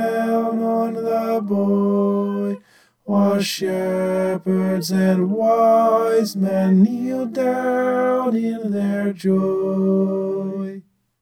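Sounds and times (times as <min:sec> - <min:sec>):
tenor singing: 0:00.0 - 0:10.8.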